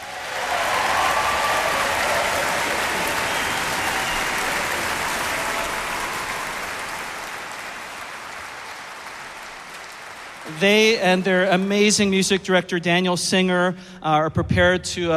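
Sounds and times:
audience applause: 0.0 - 11.7
speech: 10.6 - 15.1.

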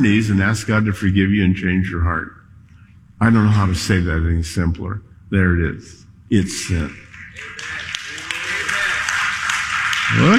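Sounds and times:
speech: 0.0 - 2.4, 3.2 - 7.8
audience clapping during a sermon: 6.6 - 10.3.

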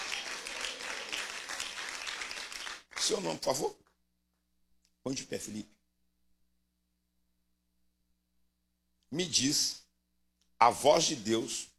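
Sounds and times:
church congregation clapping during a worship service: 0.0 - 3.7
speech: 3.1 - 3.8, 5.0 - 5.8, 9.1 - 9.8, 10.6 - 11.7.

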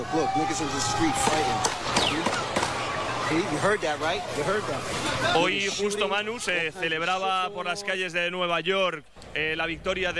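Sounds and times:
speech: 0.1 - 2.6, 3.3 - 10.1
gunshots in a street shooting: 1.2 - 3.0.

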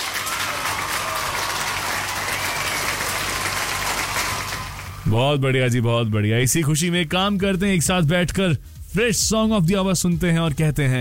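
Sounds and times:
applause sound effect: 0.0 - 5.2
speech: 5.1 - 10.9.

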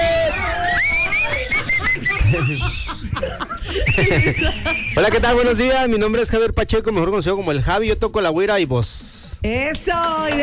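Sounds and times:
people whistling: 0.0 - 5.4
small group cheering, hollering and laughing: 0.0 - 5.5
speech: 4.0 - 10.4.

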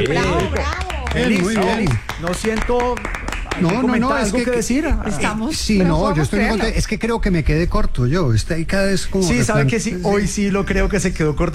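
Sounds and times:
applause: 0.0 - 4.7
speech: 0.0 - 11.5.

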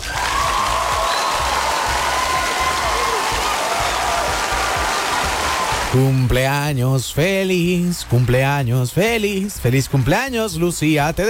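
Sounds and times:
applause sound effect: 0.0 - 6.2
speech: 6.0 - 11.2.

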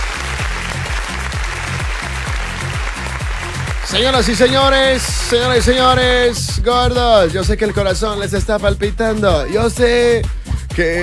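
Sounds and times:
applause: 0.0 - 6.2
speech: 3.9 - 11.0.

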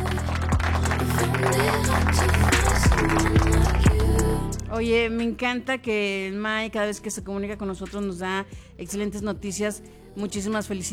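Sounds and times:
applause sound effect: 0.0 - 4.2
low tonal hum: 0.0 - 10.9
speech: 4.8 - 10.9.

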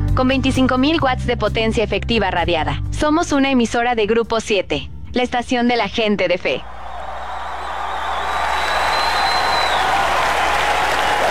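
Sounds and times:
speech: 0.2 - 6.8
audience applause: 6.7 - 11.2.

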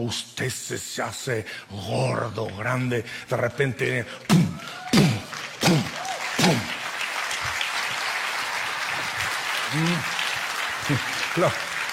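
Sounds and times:
speech: 0.0 - 5.8, 9.7 - 10.1, 10.9 - 11.7
audience applause: 4.2 - 11.9.

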